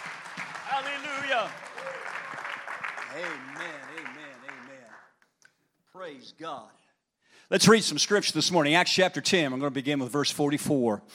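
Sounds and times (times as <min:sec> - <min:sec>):
audience clapping hands: 0:00.0 - 0:05.6
speech: 0:01.3 - 0:02.0, 0:03.1 - 0:04.6, 0:06.0 - 0:06.8, 0:07.5 - 0:11.1.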